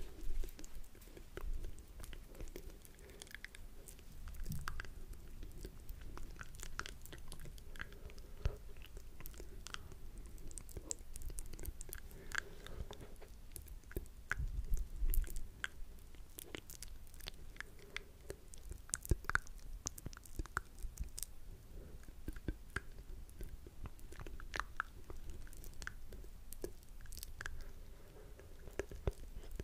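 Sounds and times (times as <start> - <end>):
wet mouth clicks, smacks and chewing noises: 0.1 - 21.3, 22.0 - 29.6.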